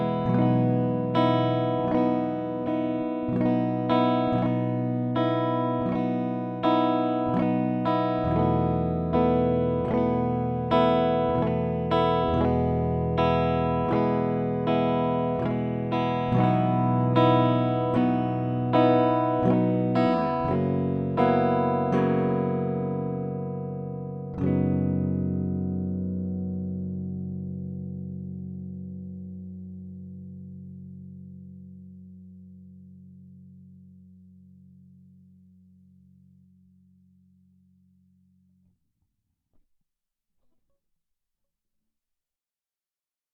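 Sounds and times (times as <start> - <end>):
guitar motif in B minor: 0.0 - 31.4.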